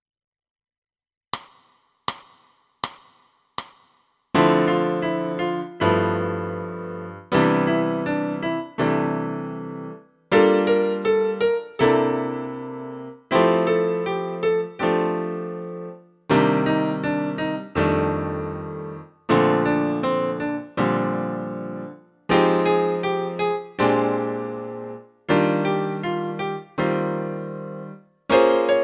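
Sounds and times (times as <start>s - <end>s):
piano: 4.4s - 28.8s.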